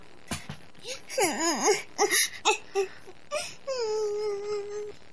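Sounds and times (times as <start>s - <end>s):
woman crying: 0.9s - 4.9s.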